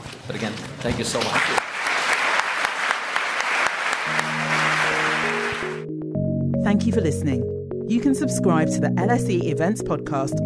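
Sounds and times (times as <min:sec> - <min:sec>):
speech: 0:00.3 - 0:01.7, 0:06.6 - 0:10.4
crowd applauding: 0:01.2 - 0:05.9
low sustained musical tone: 0:04.1 - 0:10.4.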